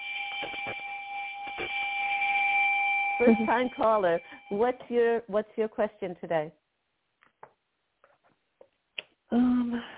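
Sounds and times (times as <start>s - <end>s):
bell sound effect for first-time caller: 0.0s - 4.9s
speech: 3.2s - 6.6s.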